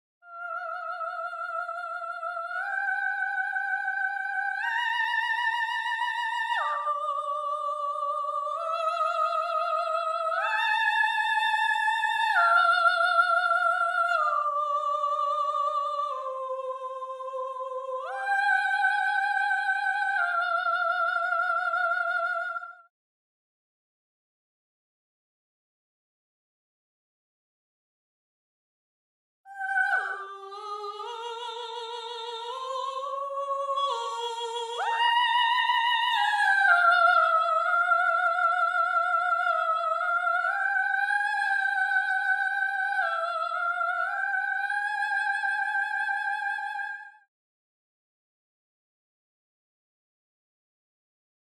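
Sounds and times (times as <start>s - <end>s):
soprano singing: 0.3s - 22.9s, 29.5s - 47.1s.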